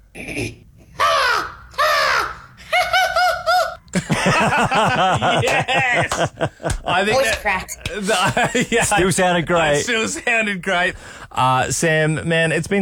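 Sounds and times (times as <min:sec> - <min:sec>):
speech: 0:00.2 - 0:00.6, 0:04.4 - 0:12.8
person imitating American crow call: 0:01.0 - 0:02.5
laughter: 0:01.0 - 0:09.2.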